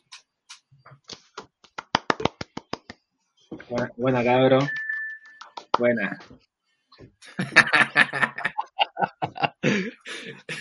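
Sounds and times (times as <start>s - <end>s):
sparse hand claps from a few people: 1.4s - 3.0s, 5.4s - 5.9s
speech: 3.7s - 4.8s, 5.8s - 7.8s
laughter: 7.2s - 10.5s.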